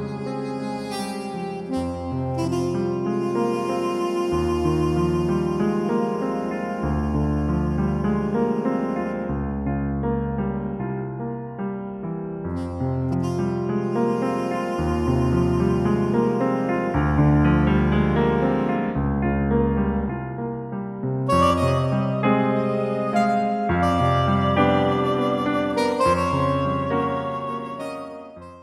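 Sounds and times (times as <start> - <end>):
saxophone: 0.0 - 9.6, 12.6 - 18.9, 21.3 - 28.6
FM synthesizer piano playing: 0.0 - 28.6.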